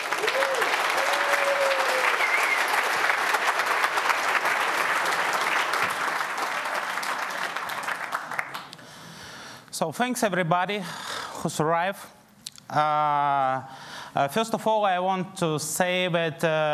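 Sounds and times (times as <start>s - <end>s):
audience applause: 0.0s - 8.8s
speech: 9.8s - 16.7s.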